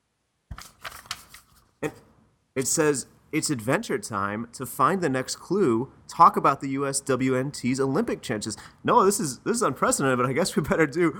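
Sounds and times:
paper envelope being opened with tearing and rustling: 0.5 - 1.8
speech: 1.8 - 2.0, 2.6 - 11.1.

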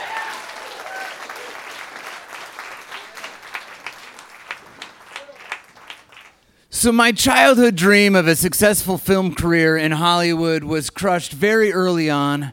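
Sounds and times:
audience applause: 0.0 - 6.4
speech: 6.8 - 12.5.

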